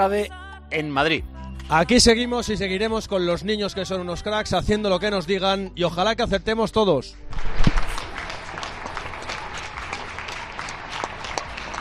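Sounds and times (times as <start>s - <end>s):
speech: 0.0s - 7.7s
people applauding from balconies: 7.3s - 11.8s.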